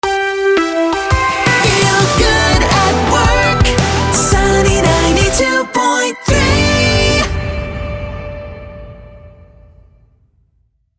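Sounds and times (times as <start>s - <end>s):
upbeat jingle: 1.1s - 9.4s.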